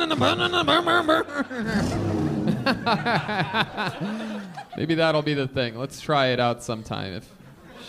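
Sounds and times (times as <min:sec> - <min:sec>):
laughter: 0:00.0 - 0:05.1, 0:07.4 - 0:07.8
speech: 0:00.1 - 0:07.8
people imitating a revving jet ski engine: 0:01.6 - 0:03.2.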